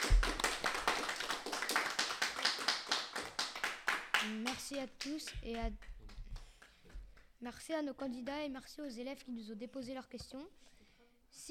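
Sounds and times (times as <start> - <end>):
audience applause: 0.0 - 4.4
speech: 4.2 - 5.9, 7.4 - 10.7, 11.3 - 11.5.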